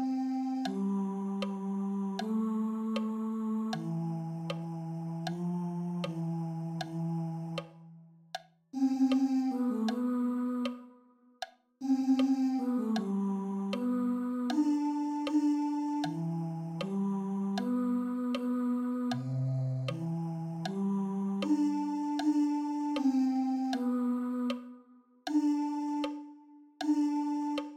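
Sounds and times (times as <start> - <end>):
tenors singing: 0.0 - 7.9, 8.8 - 11.0, 11.8 - 27.7.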